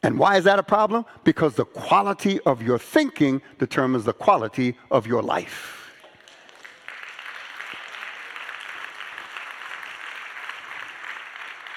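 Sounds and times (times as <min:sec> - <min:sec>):
speech: 0:00.0 - 0:05.8
crowd applauding: 0:06.0 - 0:11.7.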